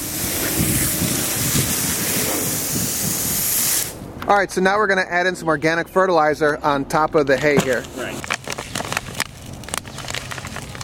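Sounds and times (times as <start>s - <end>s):
water sprayed onto a layered compost pile of hay: 0.0s - 4.0s
speech: 4.3s - 8.3s.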